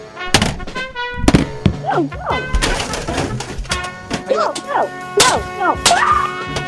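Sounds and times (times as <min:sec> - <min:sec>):
hammer smashing an Xbox 360 game console: 0:00.3 - 0:01.7, 0:02.4 - 0:04.6, 0:05.2 - 0:06.6
people shouting and yelping excitedly: 0:01.8 - 0:02.5, 0:04.3 - 0:06.6.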